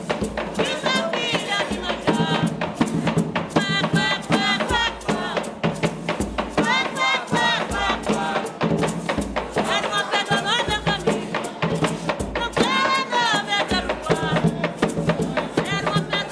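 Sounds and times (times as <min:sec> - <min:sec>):
batuque de umbigada drumming and singing: 0:00.0 - 0:16.2.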